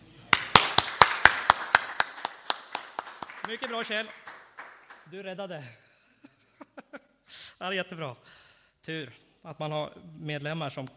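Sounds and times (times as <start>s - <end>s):
group applauding: 0.3s - 5.2s
speech: 3.5s - 4.3s, 5.1s - 5.8s, 7.6s - 10.9s.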